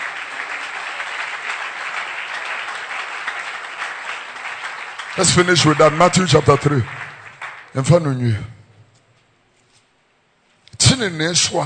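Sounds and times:
audience clapping hands: 0.0 - 8.3
speech: 5.2 - 7.0, 7.7 - 8.6, 11.0 - 11.6.

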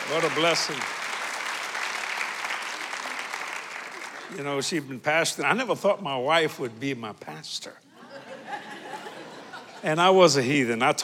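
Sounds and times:
audience applause: 0.0 - 4.6
speech: 0.1 - 1.1, 4.3 - 7.9, 9.8 - 11.0
laughter: 7.9 - 10.2.

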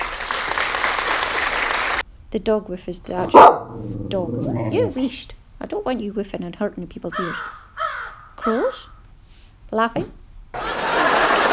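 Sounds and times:
applause sound effect: 0.0 - 2.0
speech: 2.3 - 7.6, 8.4 - 8.9, 9.7 - 10.6
laughter: 10.6 - 11.5.

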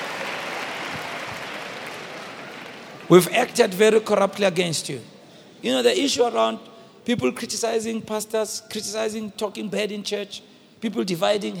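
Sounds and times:
audience clapping: 0.0 - 3.6
speech: 3.1 - 11.5.

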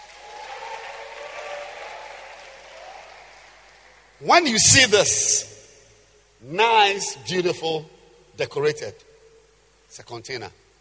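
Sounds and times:
audience clapping hands: 0.0 - 4.6
speech: 4.2 - 5.5, 6.4 - 9.1, 9.9 - 10.6.

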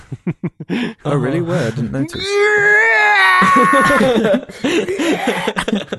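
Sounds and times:
laughter: 0.0 - 1.0, 3.2 - 5.9
speech: 0.1 - 5.9
voice imitating a stock movie scream: 2.2 - 4.2.

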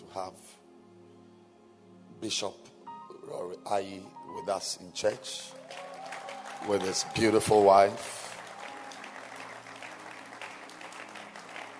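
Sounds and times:
speech: 0.2 - 0.6, 2.2 - 2.7, 3.3 - 5.8, 6.6 - 8.2
audience clapping: 5.5 - 11.7.

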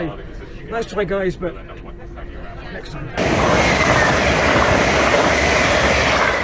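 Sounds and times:
speech: 0.1 - 1.8, 2.7 - 5.2
passenger train passing through: 3.1 - 6.4.

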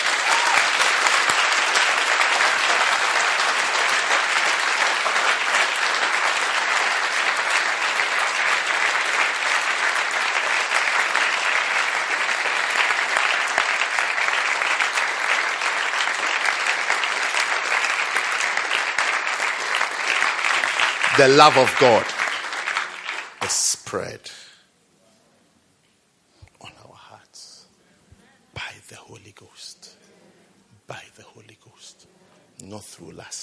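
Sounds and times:
audience applause: 0.0 - 23.8
speech: 21.2 - 22.1, 23.5 - 24.4.

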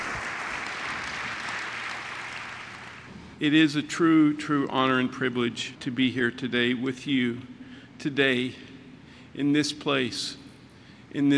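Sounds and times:
crowd clapping: 0.0 - 3.2
speech: 3.4 - 8.7, 9.4 - 10.4, 11.1 - 11.3.

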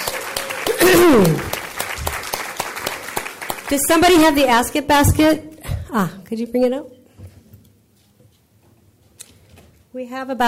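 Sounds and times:
audience applause: 0.0 - 4.4
speech: 0.8 - 1.5, 3.7 - 7.0, 10.0 - 10.4.

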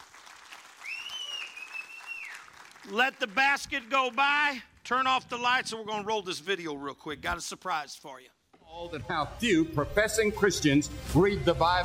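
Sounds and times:
audience applause: 0.0 - 4.5
speech: 2.8 - 11.8.

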